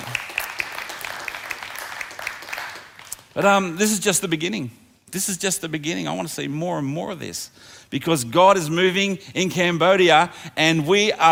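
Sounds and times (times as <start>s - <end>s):
audience applause: 0.0s - 3.2s
speech: 3.4s - 11.3s.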